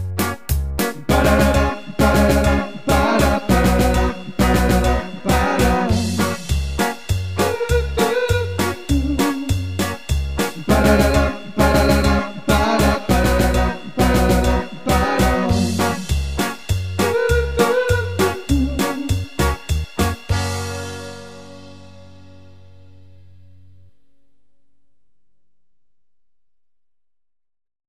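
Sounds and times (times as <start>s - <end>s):
podcast jingle: 0.8s - 22.6s.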